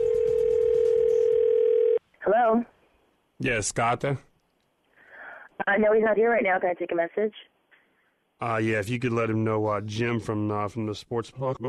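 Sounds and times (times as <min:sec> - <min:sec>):
telephone line dial tone: 0:00.0 - 0:02.0
speech: 0:03.4 - 0:04.3, 0:05.6 - 0:07.5, 0:08.4 - 0:11.6.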